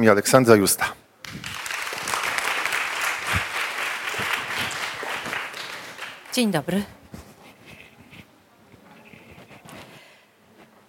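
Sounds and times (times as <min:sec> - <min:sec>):
speech: 0:00.0 - 0:01.0, 0:06.4 - 0:07.0
audience applause welcoming a guest: 0:01.2 - 0:06.6.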